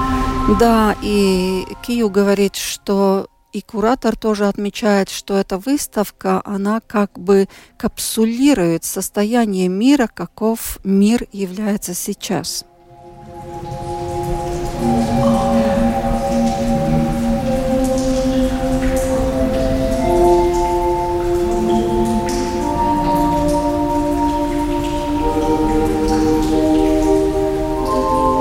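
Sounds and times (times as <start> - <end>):
speech: 0.5 - 12.7
organ music: 12.7 - 28.4
streams of water: 12.8 - 28.4.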